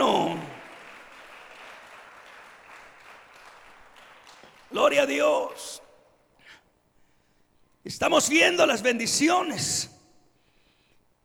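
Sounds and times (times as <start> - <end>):
audience applauding: 0.0 - 5.7
speech: 4.7 - 5.8, 7.8 - 10.0.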